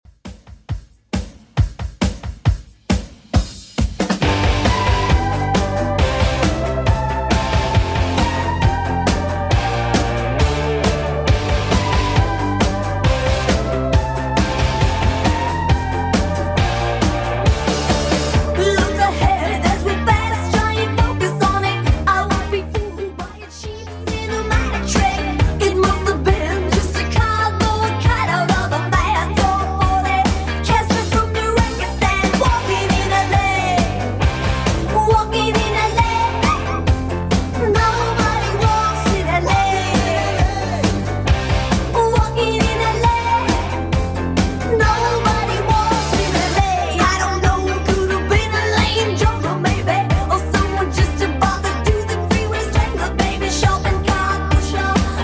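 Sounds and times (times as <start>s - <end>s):
eighties drum beat: 0.1s - 55.2s.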